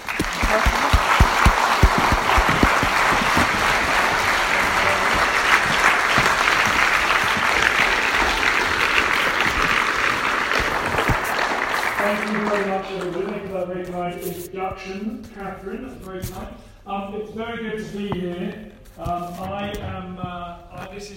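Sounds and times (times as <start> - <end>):
audience applause: 0.0 - 13.4
speech: 14.7 - 21.1.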